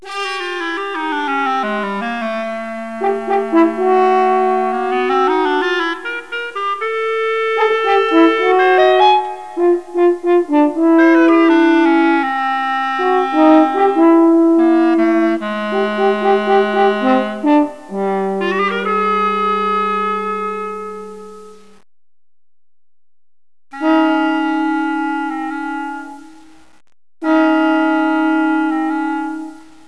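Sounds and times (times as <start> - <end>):
clarinet: 0.0 - 21.8, 23.8 - 26.6, 27.2 - 29.8.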